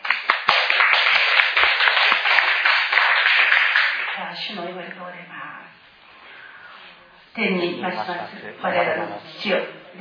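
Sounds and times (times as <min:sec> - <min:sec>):
audience clapping in praise: 0:00.0 - 0:04.2
speech: 0:07.4 - 0:09.9.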